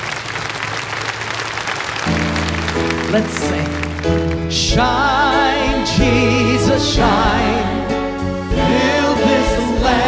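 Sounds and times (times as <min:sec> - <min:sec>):
congregation clapping as a clap offering during a church service: 0:00.0 - 0:04.8
held instrumental notes: 0:02.1 - 0:10.0
speech: 0:03.1 - 0:07.8.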